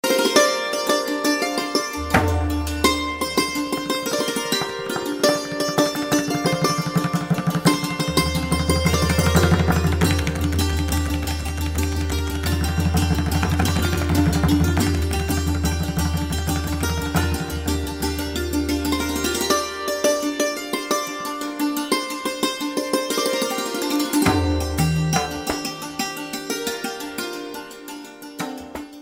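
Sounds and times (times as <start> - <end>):
santoor playing: 0.0 - 29.0.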